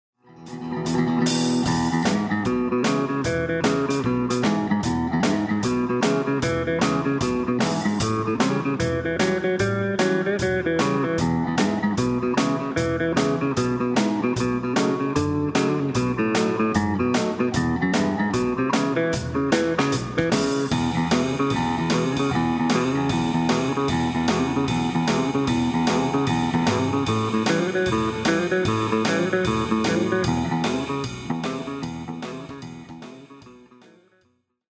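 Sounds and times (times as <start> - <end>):
guitar boogie: 0.2 - 34.2.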